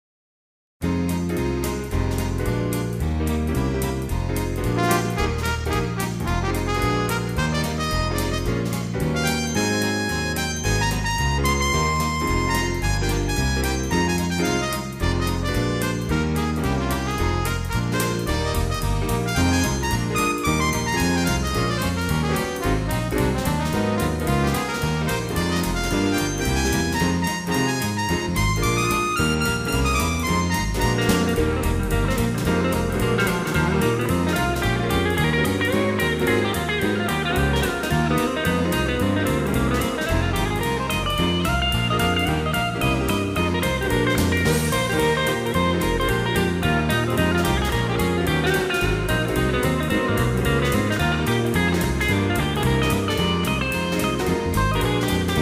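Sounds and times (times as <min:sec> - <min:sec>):
jazz jump music: 0:00.8 - 0:55.4.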